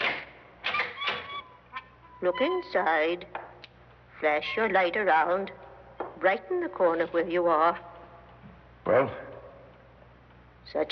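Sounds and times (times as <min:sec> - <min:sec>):
parlor door swinging open with squeaky hinges: 0:00.0 - 0:02.4
speech: 0:02.2 - 0:03.4, 0:04.2 - 0:05.6, 0:06.2 - 0:07.9, 0:08.8 - 0:09.2, 0:10.7 - 0:10.9.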